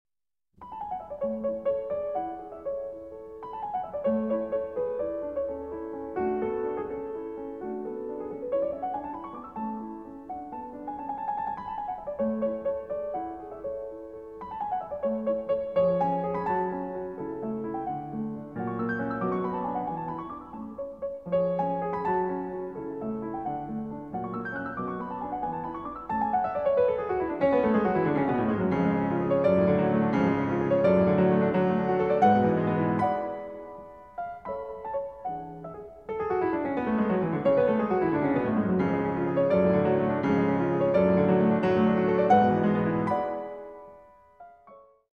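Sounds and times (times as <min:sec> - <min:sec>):
piano sonata in A major: 0:00.6 - 0:45.1.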